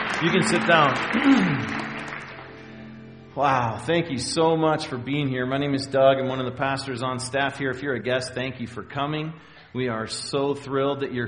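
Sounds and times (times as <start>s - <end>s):
audience clapping: 0.0s - 3.2s
speech: 0.2s - 1.8s, 3.4s - 11.2s.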